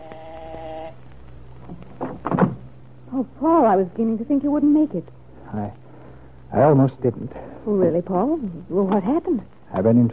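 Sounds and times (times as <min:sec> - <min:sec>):
long impatient door buzzer ring: 0:00.0 - 0:01.0
speech: 0:03.2 - 0:05.8, 0:06.5 - 0:10.1.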